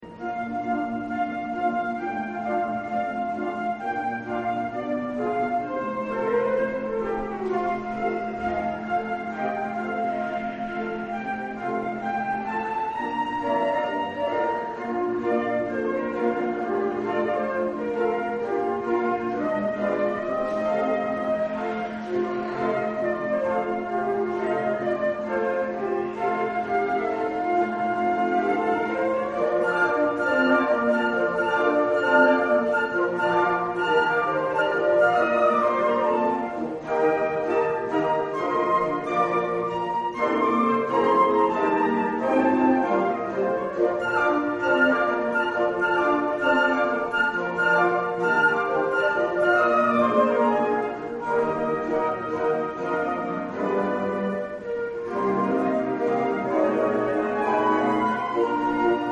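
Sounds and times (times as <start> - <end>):
flute in concert: 0.0 - 59.0.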